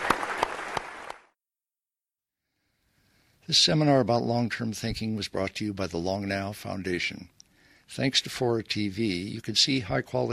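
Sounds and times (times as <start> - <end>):
audience applause for a panel: 0.0 - 1.3
speech: 3.5 - 10.3.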